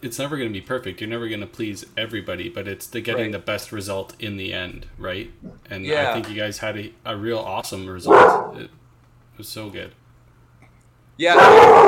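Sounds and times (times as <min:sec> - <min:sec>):
speech: 0:00.0 - 0:08.8, 0:09.4 - 0:10.0, 0:11.2 - 0:11.8
dog barking: 0:08.1 - 0:08.6, 0:11.3 - 0:11.8.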